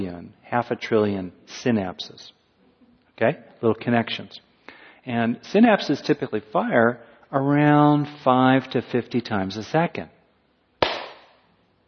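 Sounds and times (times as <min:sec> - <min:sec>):
speech: 0:00.0 - 0:02.4, 0:03.2 - 0:10.2
hand clap: 0:10.8 - 0:11.4.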